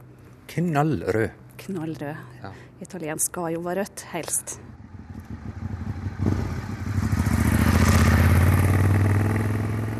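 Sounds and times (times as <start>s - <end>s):
speech: 0.5s - 4.7s
Ducati 848 Evo superbike motorcycle: 4.7s - 9.9s.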